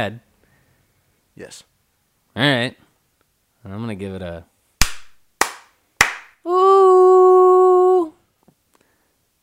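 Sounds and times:
speech: 0.0 - 0.3, 1.4 - 1.7, 2.4 - 2.8, 3.6 - 4.5, 6.4 - 7.0
hand slaps: 4.8 - 6.4.

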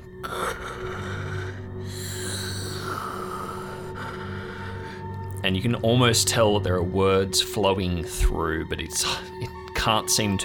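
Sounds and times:
creature's rasping breathing: 0.0 - 5.2
speech: 5.4 - 10.4.

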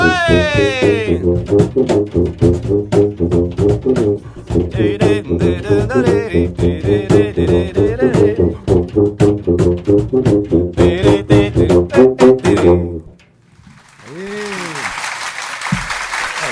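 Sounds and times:
rhythmic singing: 0.0 - 13.2
canned crowd applause: 13.8 - 16.4
person whooping: 14.0 - 15.0.

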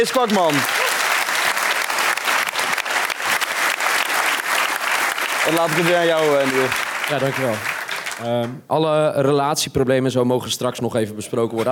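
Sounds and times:
speech: 0.0 - 0.9, 5.4 - 11.7
audience applause: 0.0 - 8.5.

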